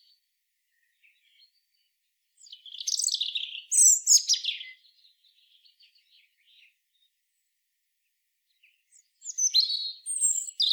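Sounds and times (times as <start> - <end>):
European robin Erithacus rubecula singing high sweet whistles and jumbled trills: 2.4 - 4.8, 8.9 - 10.7.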